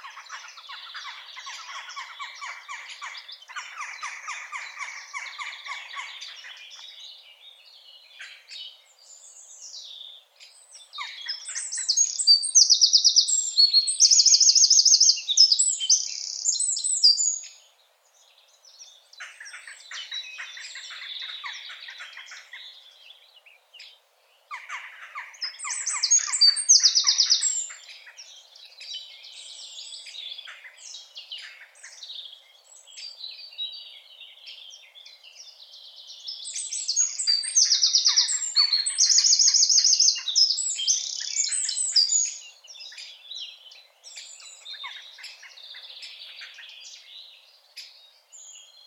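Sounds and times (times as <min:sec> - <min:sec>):
Eurasian wren singing high fast trills: 0:00.0 - 0:17.7, 0:18.4 - 0:48.8
other birds twittering and chirping: 0:00.0 - 0:48.8.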